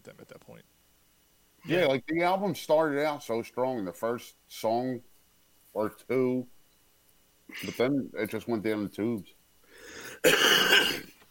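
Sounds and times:
speech: 0.1 - 0.8, 1.6 - 5.1, 5.8 - 6.6, 7.5 - 10.9
harsh raspy smoker's cough: 7.5 - 7.9, 10.0 - 11.2.

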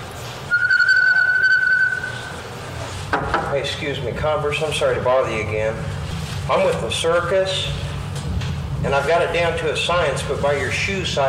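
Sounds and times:
person whistling a bluebird-like call: 0.5 - 2.3
low rumble: 1.8 - 11.2
speech: 3.6 - 7.8, 8.8 - 11.2.

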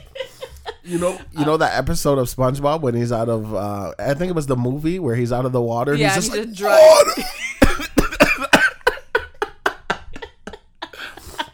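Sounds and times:
speech: 0.9 - 7.4
choking cough: 6.1 - 9.0.

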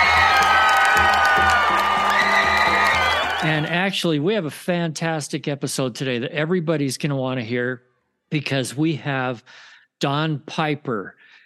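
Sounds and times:
cheering sound effect: 0.0 - 3.8
speech: 3.4 - 11.2.

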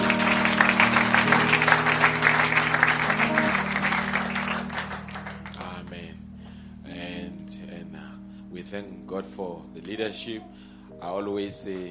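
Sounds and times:
audience applause: 0.0 - 5.7
sustained keyboard chords: 0.0 - 11.8
speech: 8.7 - 11.8.

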